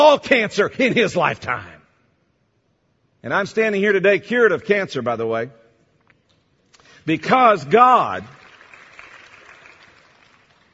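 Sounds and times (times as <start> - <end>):
speech: 0.0 - 1.8, 3.2 - 5.6, 7.0 - 8.4
audience applause during a faith talk about being cured of cancer: 8.3 - 10.7.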